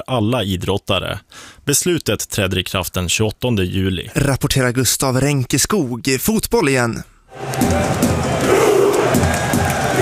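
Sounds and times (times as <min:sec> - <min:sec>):
speech: 0:00.1 - 0:08.1
crowd in Oslo cheering as Norway's World Cup squad returns home: 0:07.3 - 0:10.0.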